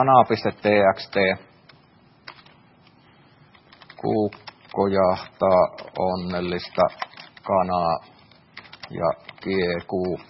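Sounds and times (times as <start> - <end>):
speech: 0.0 - 1.5, 4.0 - 8.1, 8.9 - 10.2
typing on a computer keyboard: 1.0 - 2.6, 3.5 - 10.2.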